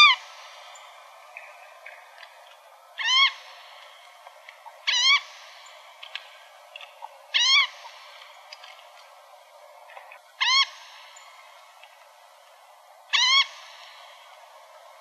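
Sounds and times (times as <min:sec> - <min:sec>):
Emberizid bird calls: 0:00.0 - 0:02.2, 0:03.0 - 0:08.6, 0:09.9 - 0:11.5, 0:13.1 - 0:14.3.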